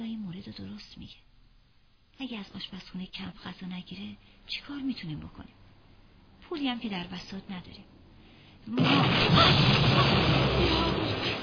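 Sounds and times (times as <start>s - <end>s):
speech: 0.4s - 1.3s, 2.2s - 5.6s, 6.5s - 8.0s, 8.6s - 10.8s
rocket explosion: 8.8s - 11.4s.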